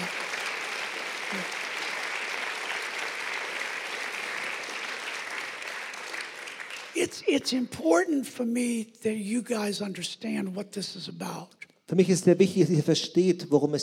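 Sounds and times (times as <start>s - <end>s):
church audience applause: 0.0s - 7.2s
speech: 7.0s - 13.8s.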